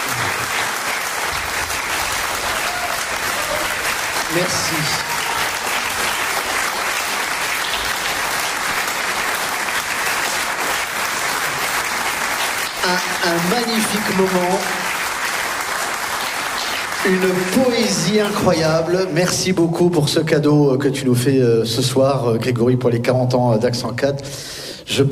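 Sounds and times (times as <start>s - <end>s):
audience applause: 0.0s - 19.0s
speech: 4.3s - 5.1s, 12.9s - 14.8s, 17.0s - 25.1s.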